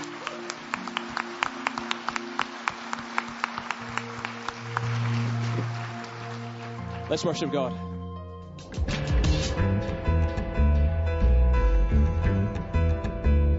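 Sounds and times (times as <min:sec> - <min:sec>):
round of clapping: 0:00.0 - 0:07.6
sustained low musical tones: 0:00.0 - 0:13.5
speech: 0:07.1 - 0:07.9.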